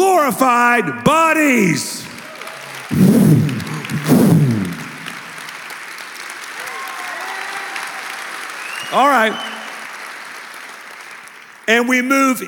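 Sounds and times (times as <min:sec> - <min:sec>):
speech: 0:00.3 - 0:02.1, 0:02.9 - 0:03.7, 0:08.9 - 0:09.5, 0:11.7 - 0:12.4
audience applause: 0:02.2 - 0:11.6.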